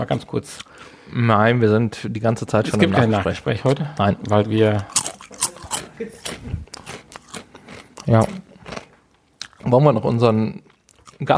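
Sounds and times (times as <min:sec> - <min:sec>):
speech: 0:00.0 - 0:05.0, 0:06.0 - 0:06.7, 0:08.1 - 0:08.4, 0:09.6 - 0:11.3
crunching rosemary chips: 0:04.8 - 0:09.8.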